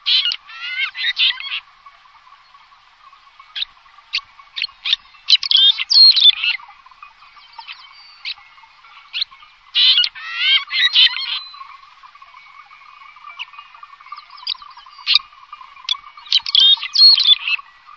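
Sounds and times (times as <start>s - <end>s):
bird harsh nasal calls: 0.0s - 2.4s, 3.1s - 17.9s.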